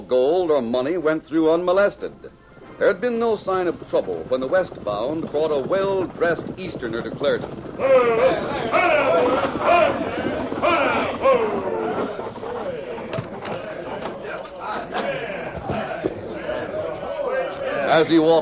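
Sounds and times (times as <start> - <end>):
speech: 0.1 - 11.7, 17.9 - 18.4
crowd chattering at a stagecoach station: 1.6 - 18.4
sharp knocks and clatters: 3.4 - 16.4.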